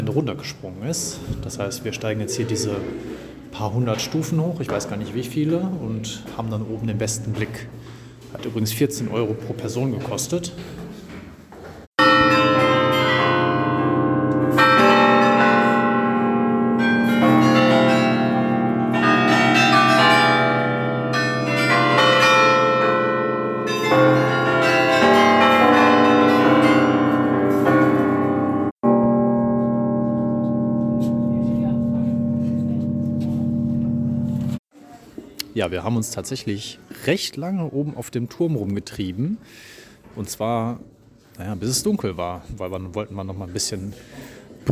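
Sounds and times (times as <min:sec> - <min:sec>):
speech: 0:00.2 - 0:10.8, 0:35.6 - 0:44.7
carillon bells ringing from belfry tower: 0:12.0 - 0:34.6.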